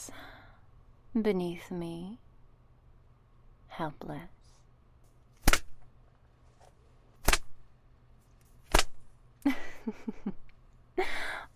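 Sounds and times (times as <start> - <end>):
speech: 1.2 - 2.2, 3.8 - 4.4, 9.4 - 10.4, 11.0 - 11.3
leather slapping against thighs: 5.4 - 5.8, 7.2 - 7.6, 8.7 - 9.0.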